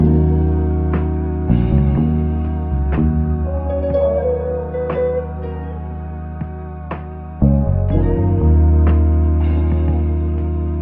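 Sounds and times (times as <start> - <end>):
guitar loops: 0.0 - 10.8.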